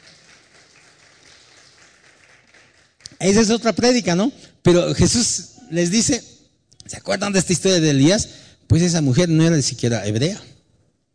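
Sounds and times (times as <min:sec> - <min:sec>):
audience applause: 0:00.0 - 0:03.1
speech: 0:03.2 - 0:06.3, 0:06.9 - 0:10.5.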